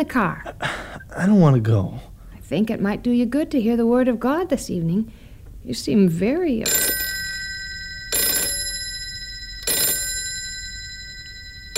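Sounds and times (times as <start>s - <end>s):
speech: 0.0s - 6.8s
faint hum: 0.0s - 11.7s
telephone bell ringing: 6.6s - 11.7s.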